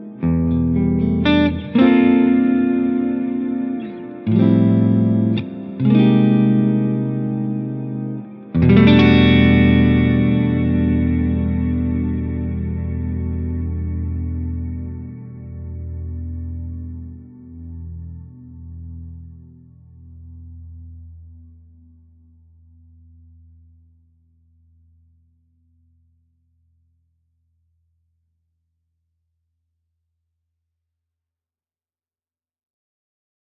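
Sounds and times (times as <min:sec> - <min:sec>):
long room reverb: 0:00.0 - 0:25.3.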